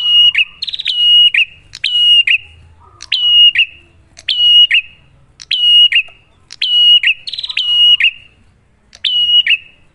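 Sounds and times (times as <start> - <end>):
bar-winged prinia piercing whistles: 0.0 - 8.4, 9.0 - 9.8.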